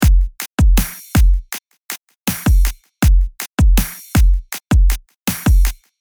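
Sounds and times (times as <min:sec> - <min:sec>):
drum: 0:00.0 - 0:01.6, 0:02.3 - 0:05.9.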